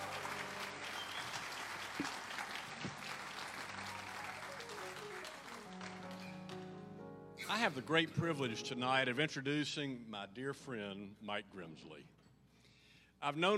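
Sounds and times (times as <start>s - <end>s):
audience applause: 0.0s - 6.7s
speech: 7.5s - 12.2s, 13.2s - 13.5s.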